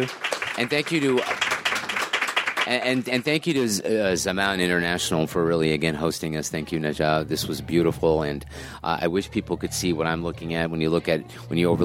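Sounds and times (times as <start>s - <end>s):
speech: 0.0s - 1.4s, 2.7s - 11.8s
audience applause: 0.0s - 3.8s.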